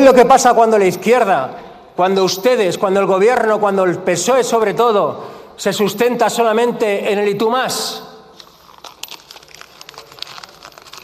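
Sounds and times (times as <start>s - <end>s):
speech: 0.0s - 8.1s
sheet of paper being crumpled: 8.4s - 11.0s.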